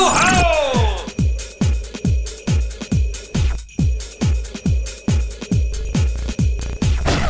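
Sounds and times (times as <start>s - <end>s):
rhythmic bass: 0.2s - 7.2s.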